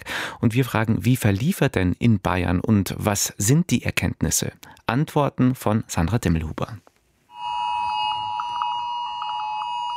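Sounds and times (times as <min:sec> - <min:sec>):
speech: 0:00.4 - 0:06.9
several mobile phones sounding emergency alerts simultaneously: 0:07.3 - 0:09.9.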